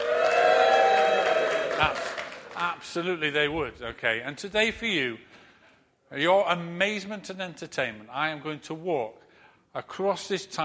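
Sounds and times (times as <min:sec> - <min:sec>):
single voice imitating a cheering crowd: 0:00.0 - 0:02.1
speech: 0:01.8 - 0:02.0, 0:02.8 - 0:05.4, 0:06.1 - 0:10.6.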